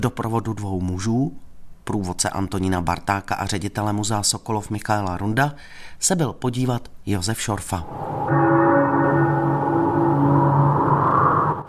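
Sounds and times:
speech: 0:00.0 - 0:08.6
deep bell ringing: 0:07.8 - 0:11.6.

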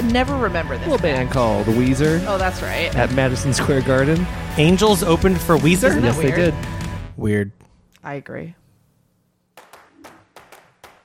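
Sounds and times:
speech: 0:00.1 - 0:08.6
clapping: 0:09.6 - 0:11.0.

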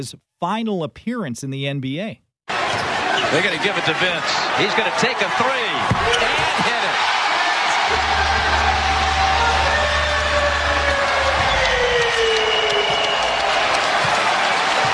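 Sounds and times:
speech: 0:00.0 - 0:06.8
large arena crowd applauding and cheering: 0:02.5 - 0:14.9
whistles: 0:11.3 - 0:13.6.

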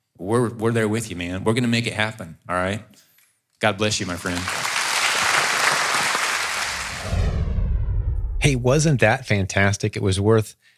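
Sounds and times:
speech: 0:00.2 - 0:04.6, 0:08.5 - 0:10.7
standing audience applauding: 0:04.0 - 0:07.3.

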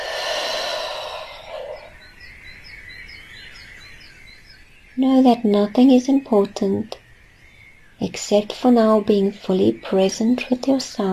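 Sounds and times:
deep breath into the belly and exhale during guided relaxation: 0:00.0 - 0:02.1
speech: 0:05.0 - 0:07.0, 0:08.0 - 0:11.1.

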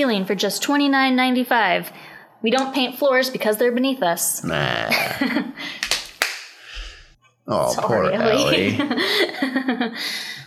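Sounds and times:
speech: 0:00.0 - 0:05.9, 0:07.5 - 0:10.4
sharp hand claps: 0:05.8 - 0:06.6.

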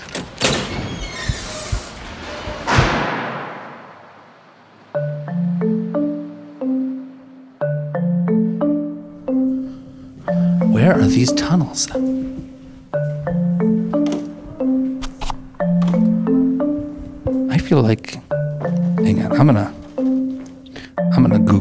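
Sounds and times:
door being opened: 0:00.0 - 0:04.0, 0:13.9 - 0:14.5, 0:15.6 - 0:16.2
plucked musical notes: 0:05.0 - 0:21.5
speech: 0:10.9 - 0:12.4, 0:17.7 - 0:18.2, 0:19.0 - 0:19.8.

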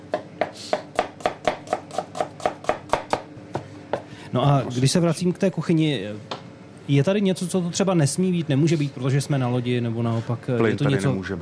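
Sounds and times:
knife chopping tomatoes on a board for sauce: 0:00.1 - 0:04.1
speech: 0:04.3 - 0:11.3.

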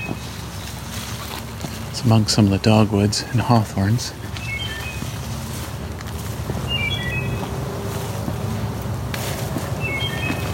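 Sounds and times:
steady low rumbling wind: 0:00.0 - 0:10.5
traffic-like noise: 0:00.0 - 0:10.5
speech: 0:02.0 - 0:04.2
Wood Thrush song of clear whistled phrases: 0:04.4 - 0:05.1, 0:06.7 - 0:07.4, 0:09.8 - 0:10.5.

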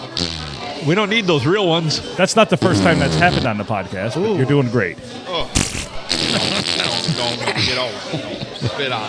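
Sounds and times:
wet sputtering mouth-fart noises: 0:00.0 - 0:00.8, 0:02.6 - 0:03.6, 0:05.4 - 0:07.7
speech: 0:00.8 - 0:05.6, 0:07.2 - 0:09.0
laughter: 0:05.5 - 0:09.0.

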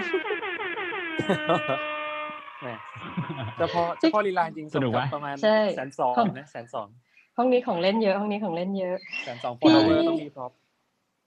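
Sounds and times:
laughter: 0:00.0 - 0:00.5, 0:01.2 - 0:02.0, 0:02.6 - 0:06.8, 0:09.3 - 0:10.2
squeeze horn sound effect during a livestream: 0:00.0 - 0:05.0
speech: 0:01.2 - 0:02.0, 0:02.6 - 0:10.6.

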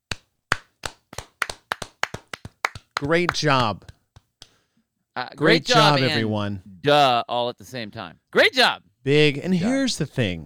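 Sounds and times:
sparse round of applause hand claps: 0:00.0 - 0:04.6
speech: 0:03.0 - 0:03.9, 0:05.2 - 0:10.4.

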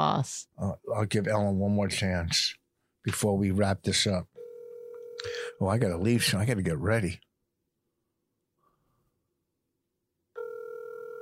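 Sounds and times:
speech: 0:00.0 - 0:04.3, 0:05.2 - 0:07.3
telephone ringing on an unanswered call: 0:04.4 - 0:05.6, 0:10.4 - 0:11.2.

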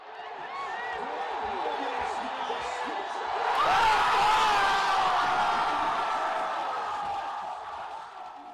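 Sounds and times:
crowd cheering the Washington Nationals' National League pennant win: 0:00.0 - 0:08.5
shouting: 0:03.4 - 0:08.5.

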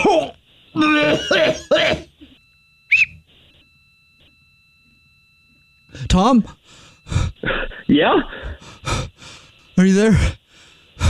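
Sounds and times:
speech: 0:00.0 - 0:02.1, 0:06.0 - 0:10.4
person coughing up a swallowed whistle: 0:00.9 - 0:02.1, 0:07.4 - 0:08.5.

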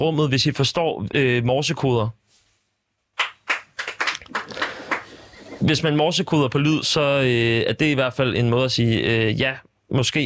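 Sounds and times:
speech: 0:00.0 - 0:02.2, 0:05.6 - 0:10.2
audience member clapping hands: 0:03.2 - 0:05.5.

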